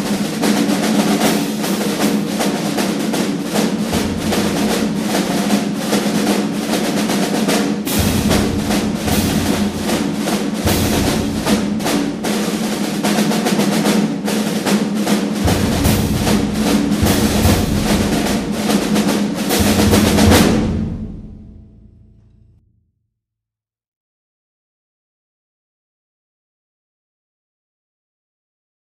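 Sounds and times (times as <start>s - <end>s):
percussion: 0.0s - 22.3s.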